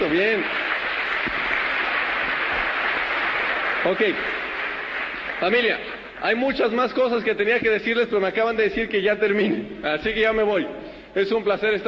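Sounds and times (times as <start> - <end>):
audience applause: 0.0 - 6.7
speech: 0.1 - 0.6, 3.8 - 4.4, 5.4 - 11.8.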